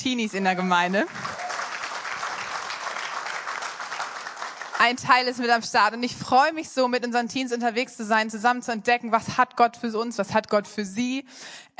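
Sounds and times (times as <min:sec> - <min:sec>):
speech: 0:00.0 - 0:01.2, 0:04.8 - 0:11.7
audience applause: 0:00.9 - 0:05.1.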